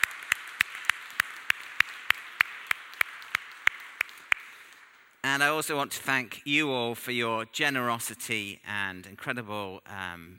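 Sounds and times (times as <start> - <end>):
audience clapping in unison: 0.0 - 5.7
constant hiss: 0.0 - 10.3
speech: 5.3 - 10.3.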